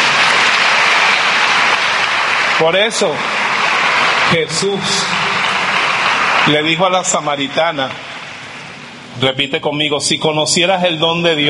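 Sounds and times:
congregation applauding in a church service: 0.0s - 8.9s
speech: 2.6s - 3.4s, 4.3s - 5.2s, 6.4s - 8.0s, 9.2s - 11.4s.

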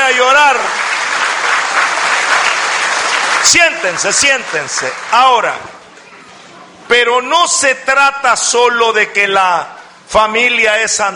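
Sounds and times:
crowd applauding: 0.0s - 5.6s
speech: 3.4s - 5.8s, 6.9s - 11.1s.

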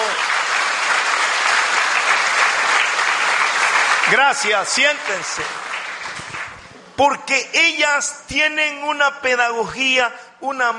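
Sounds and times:
audience applause: 0.0s - 6.8s
speech: 4.1s - 5.6s, 7.0s - 10.7s.

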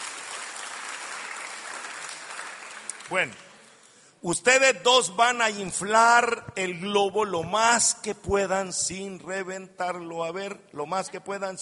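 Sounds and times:
applause for two volunteers at a balloon-inflating game: 0.0s - 3.6s
speech: 3.1s - 3.5s, 4.2s - 11.6s.

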